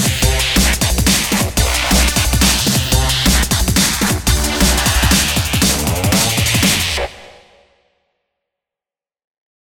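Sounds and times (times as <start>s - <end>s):
drum and bass breaks: 0.0s - 7.4s.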